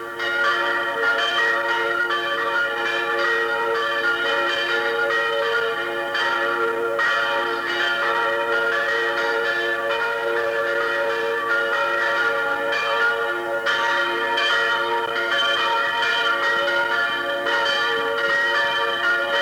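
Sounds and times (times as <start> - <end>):
church bells ringing: 0.0 - 19.4.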